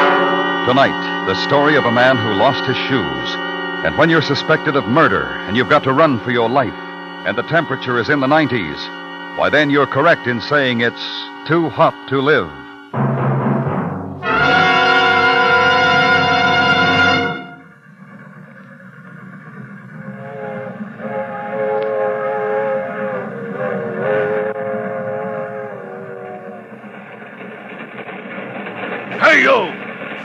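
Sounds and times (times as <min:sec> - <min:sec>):
high wavering tonal squeal: 0:00.0 - 0:13.0, 0:14.5 - 0:27.8
freight train whistle blast: 0:00.0 - 0:13.2, 0:14.2 - 0:17.8, 0:20.0 - 0:26.7, 0:29.2 - 0:30.2
freight train slowing for a crossing rolling: 0:00.0 - 0:30.2
speech: 0:00.7 - 0:13.2.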